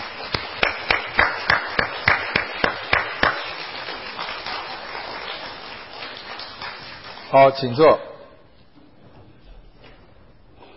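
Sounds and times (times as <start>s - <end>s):
audience clapping for fathers: 0.0s - 7.9s
speech: 7.3s - 8.1s.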